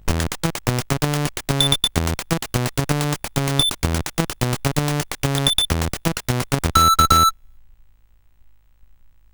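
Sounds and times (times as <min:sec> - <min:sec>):
SID chiptune music on a CSG8580R5 chip: 0:00.0 - 0:07.3.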